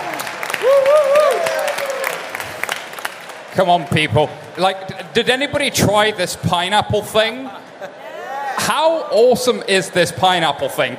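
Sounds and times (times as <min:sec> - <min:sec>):
whooping cheer: 0:00.0 - 0:02.4
bar audience applauding: 0:00.0 - 0:04.2
speech: 0:03.6 - 0:08.0, 0:08.6 - 0:10.9.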